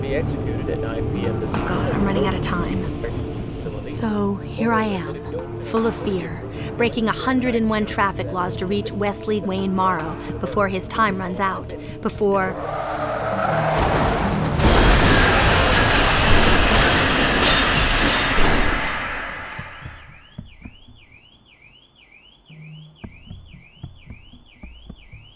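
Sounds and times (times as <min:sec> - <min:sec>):
speech: 0:00.1 - 0:13.7
loud car crash with crunching metal: 0:13.4 - 0:19.8
debris clinking: 0:13.7 - 0:20.2
glass shattering: 0:13.7 - 0:20.2
warbling car alarm: 0:19.5 - 0:25.3.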